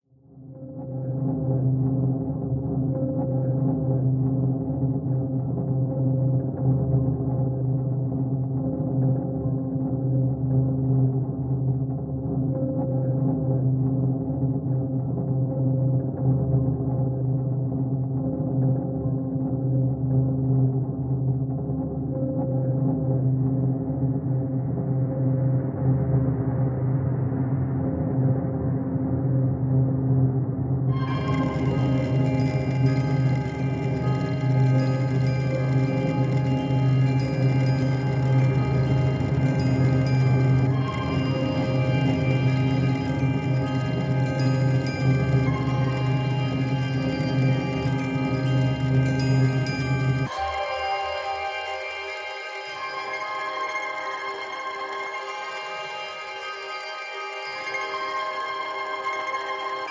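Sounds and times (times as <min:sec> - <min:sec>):
dark ambient music: 0:00.3 - 0:59.8.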